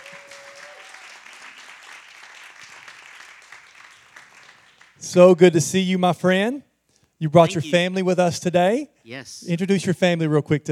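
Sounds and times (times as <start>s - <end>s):
crowd applause: 0.0s - 5.0s
speech: 5.0s - 10.6s.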